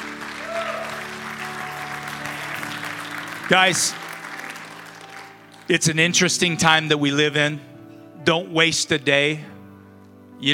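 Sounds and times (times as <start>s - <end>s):
audience hand clapping: 0.0s - 6.1s
speech: 3.5s - 4.0s, 5.7s - 9.6s.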